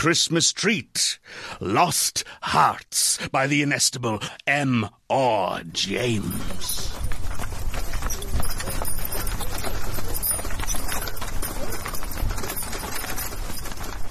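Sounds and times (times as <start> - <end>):
speech: 0.0 - 7.1
horse-drawn carriage hooves clip-clopping: 5.9 - 14.1.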